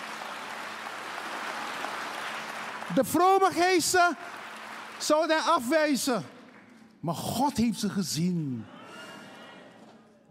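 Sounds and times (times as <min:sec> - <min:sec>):
church congregation applauding: 0:00.0 - 0:09.1
speech: 0:02.9 - 0:04.4, 0:05.0 - 0:06.3, 0:07.0 - 0:08.8.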